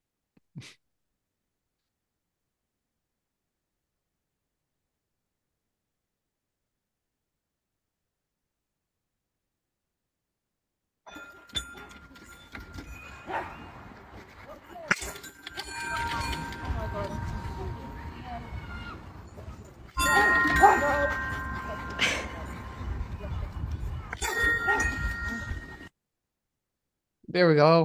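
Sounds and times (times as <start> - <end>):
speech: 0.6 - 0.8, 27.4 - 27.8
bell-like dings and clangs made by a dog: 11.1 - 14.0, 14.9 - 25.9
busy noisy background: 15.0 - 25.8.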